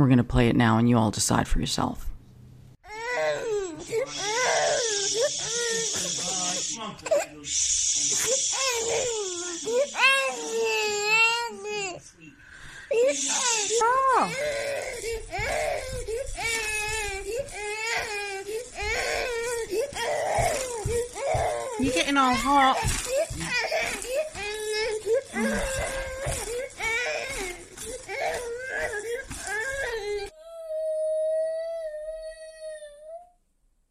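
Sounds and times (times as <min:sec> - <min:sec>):
speech: 0:00.0 - 0:02.1, 0:13.1 - 0:16.0, 0:22.0 - 0:23.0
distressed overheated baby crying and wailing: 0:02.9 - 0:07.4, 0:08.1 - 0:12.0, 0:12.9 - 0:33.4
adult talking and shushing: 0:03.9 - 0:10.9, 0:12.9 - 0:23.9.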